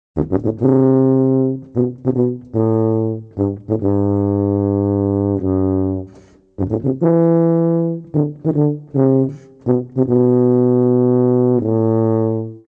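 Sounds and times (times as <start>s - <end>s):
tuba: 0.2s - 12.6s.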